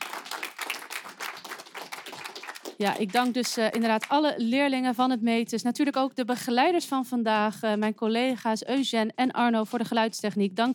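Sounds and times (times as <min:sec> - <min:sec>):
audience applause: 0:00.0 - 0:03.8
speech: 0:02.8 - 0:10.7.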